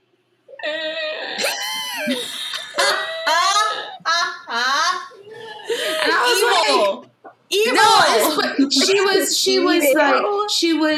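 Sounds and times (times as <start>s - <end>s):
person imitating a cat's obstructed breathing with wheezy vocal squeaks: 0.5s - 5.8s
laughter: 1.4s - 7.0s, 7.8s - 10.0s
speech: 9.5s - 10.9s.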